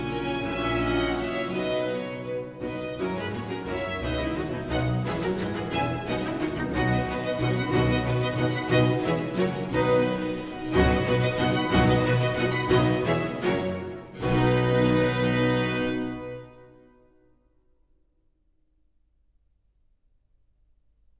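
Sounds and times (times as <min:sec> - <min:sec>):
string orchestra playing an allegro concerto: 0:00.0 - 0:17.0.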